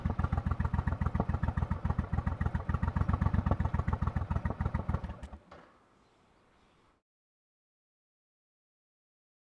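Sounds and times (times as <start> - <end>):
Suzuki VL 1500 Intruder motorcycle on the road: 0.0 - 6.8.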